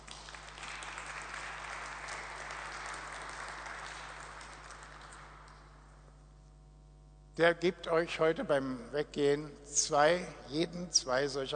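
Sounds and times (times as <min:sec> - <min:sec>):
audience applause: 0:00.0 - 0:05.7
speech: 0:07.4 - 0:11.5.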